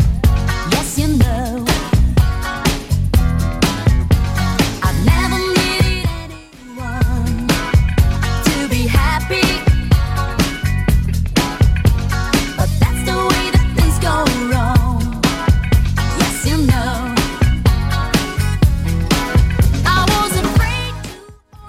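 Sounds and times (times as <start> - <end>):
90s Redrum drum machine beat: 0.0 - 6.4, 7.0 - 21.3.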